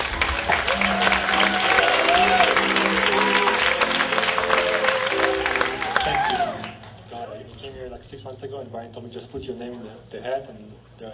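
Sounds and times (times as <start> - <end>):
audience applause: 0.0 - 7.0
speech: 8.8 - 11.1.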